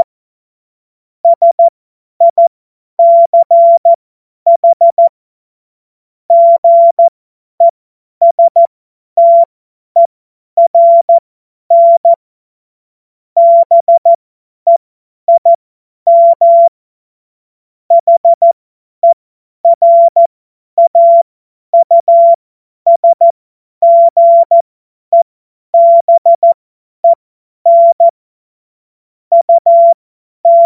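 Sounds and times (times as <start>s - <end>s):
CW Morse code beeps: 1.3s - 3.9s, 4.5s - 5.1s, 6.3s - 12.2s, 13.4s - 16.7s, 17.9s - 21.2s, 21.8s - 25.2s, 25.8s - 28.1s, 29.3s - 30.6s.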